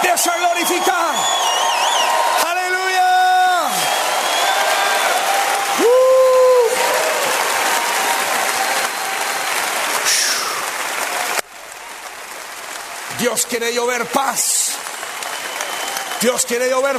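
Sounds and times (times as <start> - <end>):
audience shouting: 0.0 - 10.3
audience applauding: 0.0 - 16.9
speech: 0.2 - 1.2, 13.2 - 14.6, 16.2 - 16.9.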